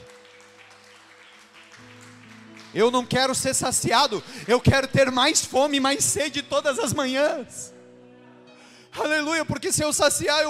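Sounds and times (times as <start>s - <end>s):
audience applause: 0.0s - 5.2s
speech: 2.7s - 7.8s, 9.0s - 10.4s.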